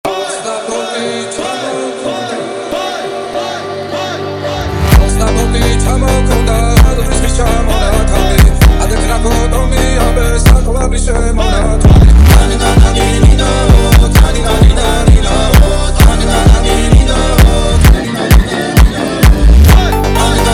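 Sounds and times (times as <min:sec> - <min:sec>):
Georgian folk funk music: 0:04.5 - 0:20.5.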